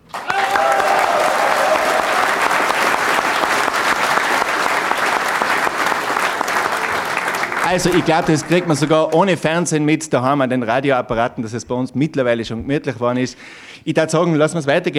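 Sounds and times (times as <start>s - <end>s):
audience applause: 0.0s - 9.6s
speech: 7.7s - 14.9s.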